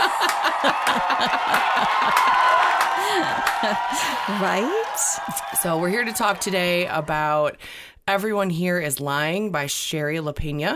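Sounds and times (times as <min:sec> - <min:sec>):
laughter: 0:00.0 - 0:04.0
cheers and whoops: 0:00.0 - 0:07.5
inserted fake applause sound effect: 0:00.0 - 0:07.5
speech: 0:00.6 - 0:10.7.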